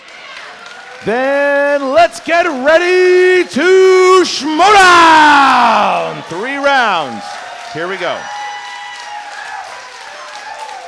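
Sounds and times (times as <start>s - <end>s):
studio audience applause: 0.0s - 3.6s, 4.5s - 10.8s
speech: 1.0s - 8.4s.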